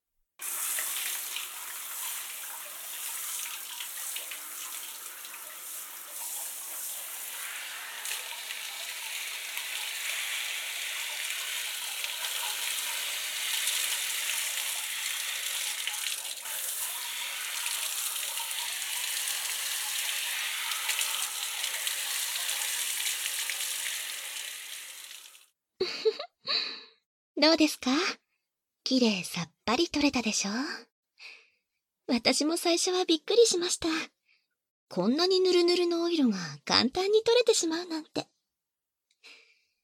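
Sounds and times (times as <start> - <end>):
shower water rinsing: 0.4 - 25.5
speech: 27.4 - 28.2, 28.9 - 30.9, 32.1 - 34.2, 34.9 - 38.3.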